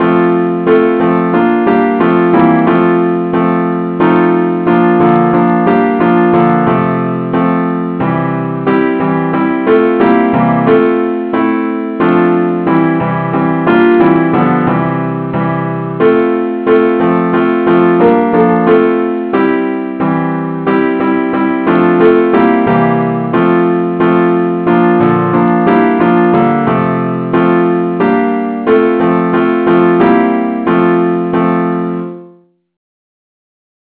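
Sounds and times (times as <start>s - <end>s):
accompaniment music in F: 0.0s - 32.2s.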